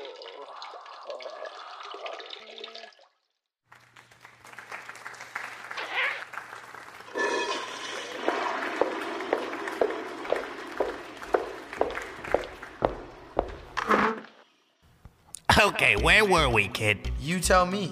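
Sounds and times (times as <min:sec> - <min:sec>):
man urinating into toilet on hot mic: 0:00.0 - 0:03.3, 0:07.1 - 0:12.8
speech: 0:15.6 - 0:17.9.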